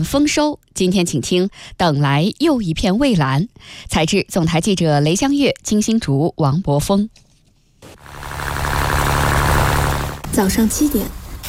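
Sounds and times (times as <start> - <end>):
speech: 0.0 - 7.2, 10.4 - 11.2
boat motor starting in Sanya Yazhou central fishing harbor: 7.9 - 11.0.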